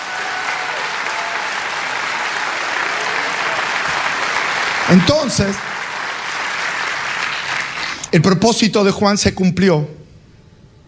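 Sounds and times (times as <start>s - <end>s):
audience applauding: 0.0s - 8.2s
speech: 4.9s - 5.8s, 8.1s - 10.0s.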